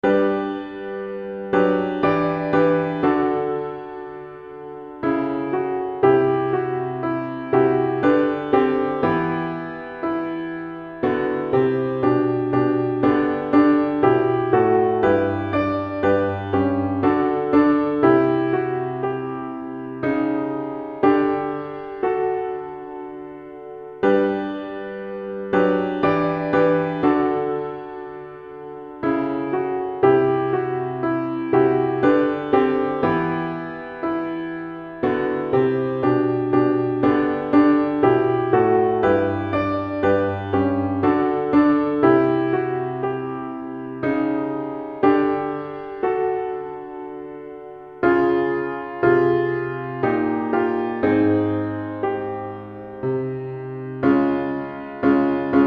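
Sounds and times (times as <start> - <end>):
winter rain piano music: 0.0 - 55.6.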